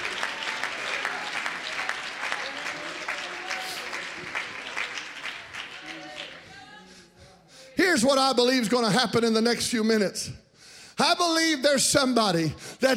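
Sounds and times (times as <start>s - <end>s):
audience clapping: 0.0s - 6.6s
speech: 8.0s - 10.4s, 11.0s - 12.9s.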